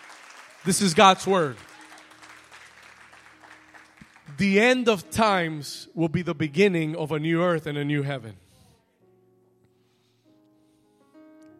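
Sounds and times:
audience applause: 0:00.0 - 0:04.8
speech: 0:00.6 - 0:01.7, 0:04.4 - 0:08.4.

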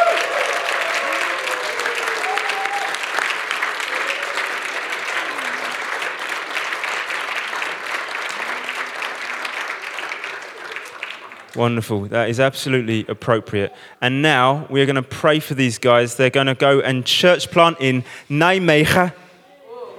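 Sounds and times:
audience cheering and applauding: 0:00.0 - 0:11.7
speech: 0:11.6 - 0:19.2.

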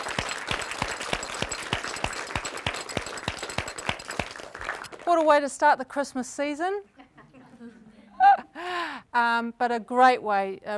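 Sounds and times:
audience applause: 0:00.0 - 0:05.2
speech: 0:05.1 - 0:06.9, 0:08.6 - 0:10.7.

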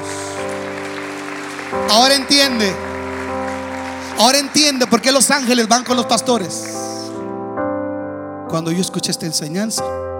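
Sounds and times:
applause: 0:00.0 - 0:07.3
speech: 0:01.7 - 0:02.9, 0:04.2 - 0:06.8, 0:08.5 - 0:10.1.

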